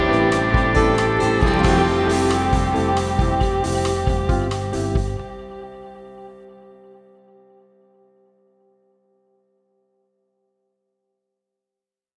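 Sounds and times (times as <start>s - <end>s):
bossa nova win outro: 0.0s - 5.6s.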